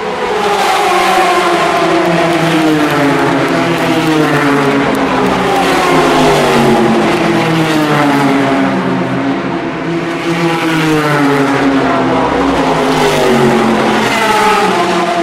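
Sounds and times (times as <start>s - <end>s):
LMP2 race car engines revving: 0.0s - 15.2s.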